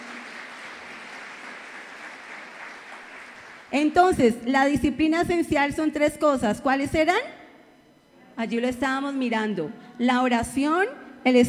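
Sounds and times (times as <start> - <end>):
applause: 0.0 - 3.8
speech: 3.7 - 7.4, 8.4 - 11.4.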